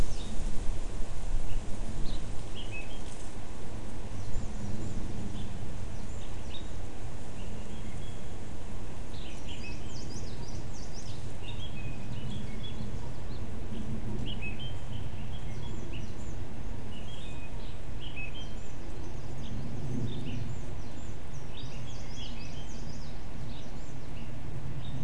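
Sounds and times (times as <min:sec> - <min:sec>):
cluster of birds: 0:00.0 - 0:25.0.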